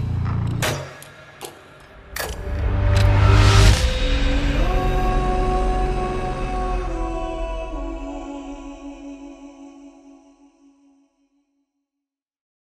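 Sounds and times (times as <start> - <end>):
epic industrial hybrid horror music with countdown vocals: 0.0 - 9.6.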